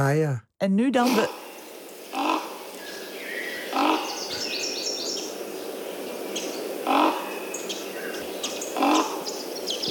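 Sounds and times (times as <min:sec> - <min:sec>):
speech: 0:00.0 - 0:01.4
smaller birds twittering and chirping: 0:01.2 - 0:09.8
common raven deep harsh croaking call: 0:01.3 - 0:04.5, 0:06.6 - 0:09.6.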